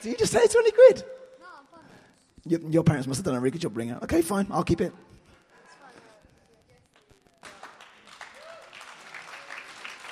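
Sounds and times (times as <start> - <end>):
speech: 0.0 - 1.2, 2.4 - 5.2
audience applause: 7.0 - 10.1.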